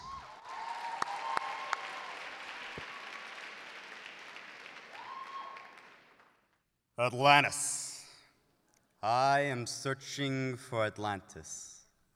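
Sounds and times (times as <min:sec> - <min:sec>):
audience applause: 0:00.0 - 0:06.5
speech: 0:07.0 - 0:07.8, 0:09.0 - 0:11.8.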